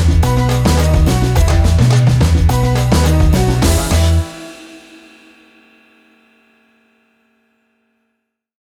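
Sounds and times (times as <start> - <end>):
African reggae fusion music: 0.0 - 5.2.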